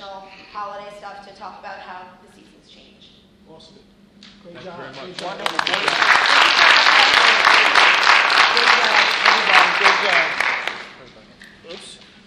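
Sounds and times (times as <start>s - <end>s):
speech: 0.6s - 8.0s, 9.8s - 10.4s
crowd clapping enthusiastically: 4.9s - 11.0s.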